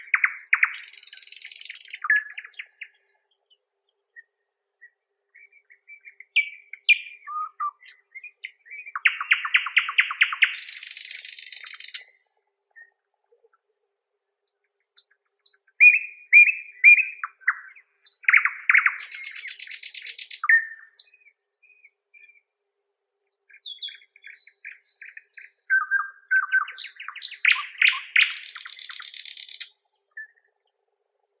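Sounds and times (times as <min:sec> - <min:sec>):
common nightingale Luscinia luscinia singing: 0:00.0 - 0:13.0, 0:14.4 - 0:22.5, 0:23.2 - 0:30.8.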